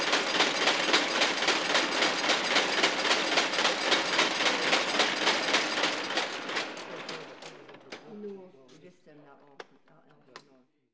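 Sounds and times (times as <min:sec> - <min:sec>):
carding machine loom: 0:00.0 - 0:08.4.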